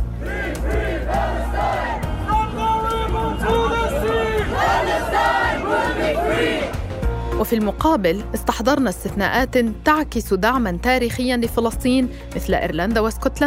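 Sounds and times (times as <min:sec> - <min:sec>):
protest crowd shouting: 0:00.0 - 0:06.9
speech: 0:07.4 - 0:13.4.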